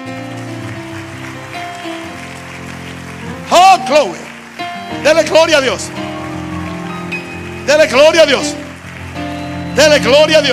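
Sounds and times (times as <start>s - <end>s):
audience applauding loudly: 0.0s - 10.5s
sustained keyboard chords: 0.0s - 10.5s
speech: 3.9s - 4.2s, 5.0s - 6.1s, 7.7s - 8.6s, 9.8s - 10.5s.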